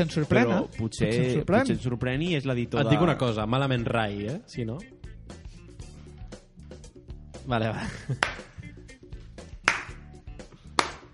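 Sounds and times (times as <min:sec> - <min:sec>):
speech: 0:00.0 - 0:05.0, 0:07.4 - 0:08.5
audience member clapping: 0:08.1 - 0:08.8, 0:09.6 - 0:11.1.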